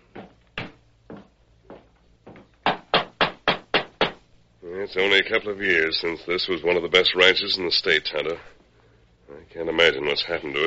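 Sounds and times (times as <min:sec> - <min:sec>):
knocking on a wooden door: 0:02.3 - 0:04.2
speech: 0:04.8 - 0:08.6, 0:09.6 - 0:10.6.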